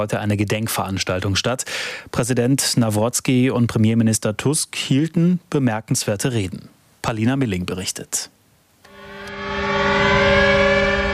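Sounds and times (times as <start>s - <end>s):
speech: 0.0s - 8.4s
memorial air-raid siren wailing: 8.9s - 11.1s.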